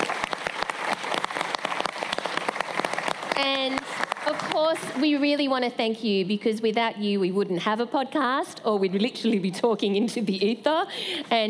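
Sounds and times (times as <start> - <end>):
audience applause: 0.0 - 5.0
speech: 3.4 - 11.4.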